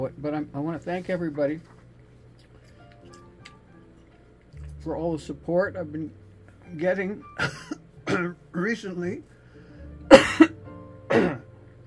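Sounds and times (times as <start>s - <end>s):
speech: 0.0s - 1.8s, 4.8s - 9.3s
person coughing and choking: 7.4s - 8.3s, 10.1s - 10.5s, 11.1s - 11.4s.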